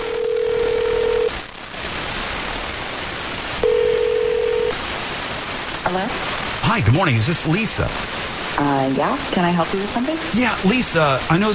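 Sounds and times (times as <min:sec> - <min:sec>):
telephone dialing on an outgoing call: 0:00.0 - 0:01.3, 0:03.6 - 0:04.8
hiss: 0:00.0 - 0:11.5
speech: 0:05.9 - 0:11.5.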